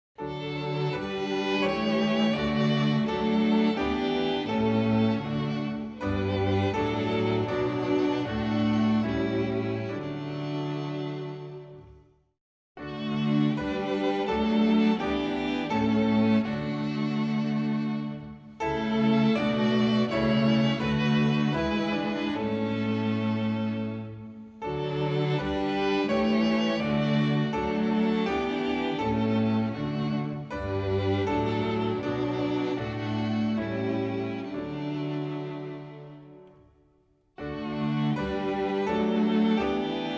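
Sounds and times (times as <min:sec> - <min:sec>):
instrumental hymn: 0:00.2 - 0:12.0, 0:12.8 - 0:40.1.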